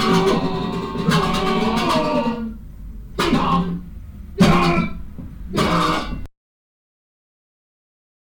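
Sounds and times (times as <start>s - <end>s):
jazz music: 0.0s - 4.8s.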